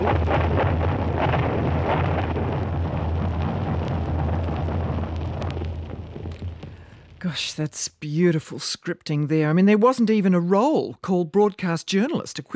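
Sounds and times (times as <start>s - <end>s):
bombs exploding in harbour: 0.0s - 7.5s
speech: 7.2s - 12.5s.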